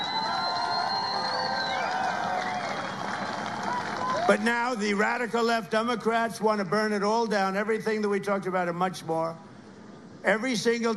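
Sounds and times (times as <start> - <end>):
whistles: 0.0 - 4.1
clapping: 0.0 - 4.4
large rally crowd cheering: 0.0 - 4.8
speech: 4.3 - 9.5, 10.2 - 10.9.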